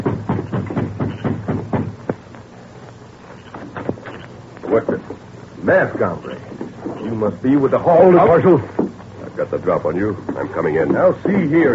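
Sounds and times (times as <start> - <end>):
knocking on a front door: 0.0 - 2.0
speech: 4.7 - 8.8, 9.5 - 11.7.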